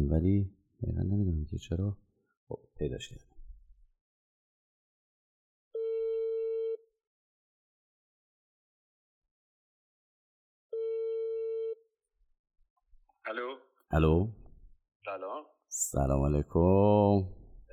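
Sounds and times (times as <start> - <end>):
speech: 0.1 - 3.3, 13.3 - 14.4, 15.0 - 17.4
telephone ringing tone while placing a call: 5.8 - 6.8, 10.7 - 11.8.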